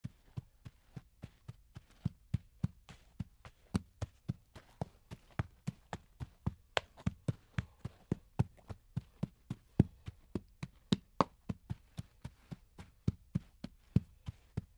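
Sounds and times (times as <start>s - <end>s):
hooves clopping: 0.0s - 14.7s.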